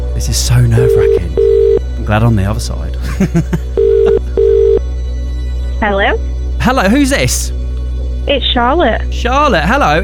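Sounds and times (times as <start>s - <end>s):
speech: 0.2s - 3.7s, 5.8s - 7.6s, 8.2s - 10.0s
telephone ringback tone while calling a prize winner: 0.8s - 1.8s, 3.8s - 4.8s
laughter: 3.0s - 4.4s.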